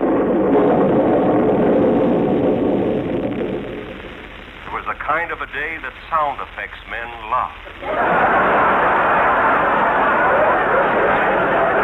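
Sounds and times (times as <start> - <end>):
rolling thunder: 0.0 - 4.6
speech: 5.4 - 8.6
laughter: 7.8 - 11.8.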